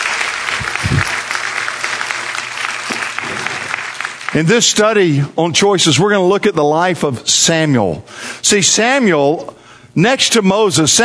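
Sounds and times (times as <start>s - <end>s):
audience applause: 0.0s - 4.7s
speech: 4.3s - 11.0s.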